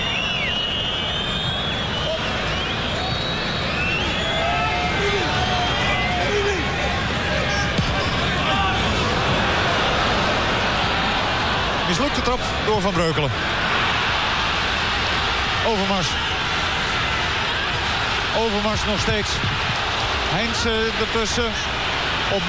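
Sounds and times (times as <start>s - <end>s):
whistles: 0.0s - 6.3s
large stadium crowd roaring and shouting: 0.0s - 22.4s
speech: 12.2s - 13.7s, 15.7s - 16.3s, 18.4s - 19.5s, 20.3s - 22.4s.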